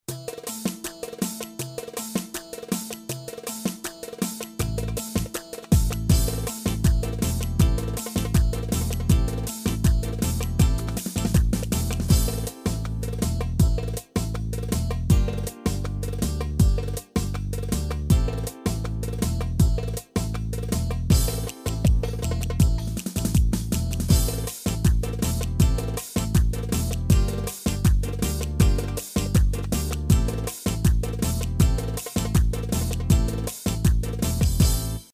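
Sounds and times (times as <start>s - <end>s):
misket rhythm on a Yamaha PSR-A300 keyboard: 0.1s - 35.1s.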